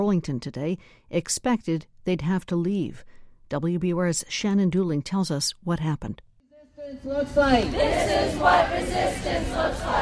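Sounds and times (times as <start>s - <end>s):
speech: 0.0s - 6.3s, 6.9s - 9.9s
crowd of immigrant advocates gathering outside: 6.6s - 9.9s.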